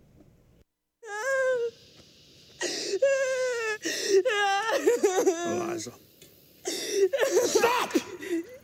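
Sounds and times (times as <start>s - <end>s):
woman wailing in sorrow over her children being sold away: 1.0s - 1.8s, 3.0s - 5.5s, 6.7s - 8.6s
short sobbing breaths: 2.6s - 5.2s, 6.6s - 8.6s
speech: 5.4s - 6.1s.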